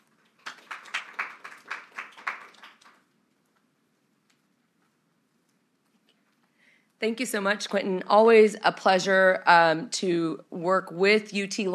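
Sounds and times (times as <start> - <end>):
audience applause: 0.4 - 3.0
speech: 7.0 - 11.7.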